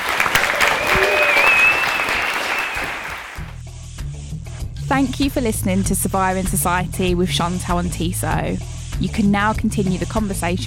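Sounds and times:
audience round of applause: 0:00.0 - 0:03.5
speech: 0:05.0 - 0:10.6.

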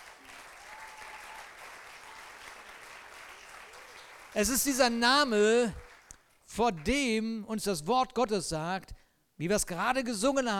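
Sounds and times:
cheers: 0:00.0 - 0:04.5
audience applauding: 0:00.0 - 0:07.0
speech: 0:04.4 - 0:05.8, 0:06.5 - 0:10.5.

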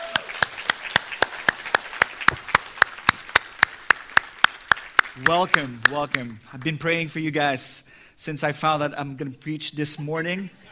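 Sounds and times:
audience clapping: 0:00.0 - 0:06.9
speech: 0:05.2 - 0:10.7.

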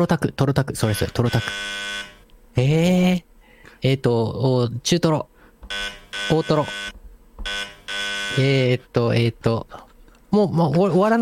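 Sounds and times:
speech: 0:00.0 - 0:02.0, 0:02.6 - 0:07.7, 0:08.4 - 0:11.2
quiz show wrong-answer buzzer: 0:01.0 - 0:02.2, 0:05.7 - 0:08.7.

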